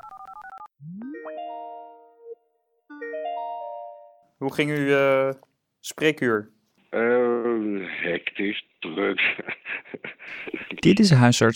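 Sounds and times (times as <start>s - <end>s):
phone ringing tones: 0.0s - 4.2s
speech: 4.4s - 11.5s
laughter: 7.0s - 10.8s.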